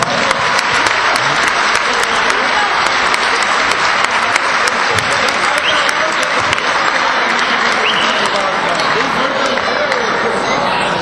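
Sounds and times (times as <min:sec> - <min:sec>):
crowd applause: 0:00.0 - 0:10.9.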